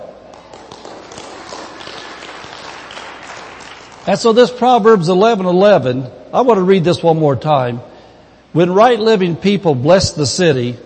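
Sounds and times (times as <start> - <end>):
audience clapping: 0.3 - 4.5
speech: 4.0 - 7.9, 8.5 - 10.8.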